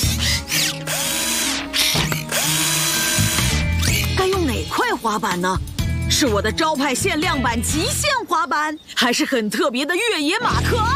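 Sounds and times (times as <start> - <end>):
power screwdriver whirring: 0.0 - 4.2
speech: 5.0 - 10.9.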